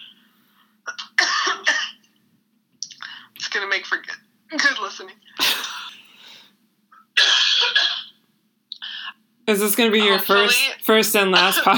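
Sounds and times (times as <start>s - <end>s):
cough: 0.8s - 2.1s, 7.2s - 8.2s
speech: 3.8s - 5.7s, 9.5s - 11.7s.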